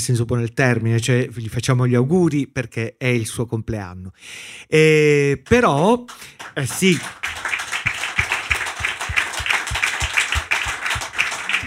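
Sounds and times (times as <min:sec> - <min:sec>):
speech: 0:00.0 - 0:07.5
audience applause in an auditorium: 0:05.5 - 0:11.6.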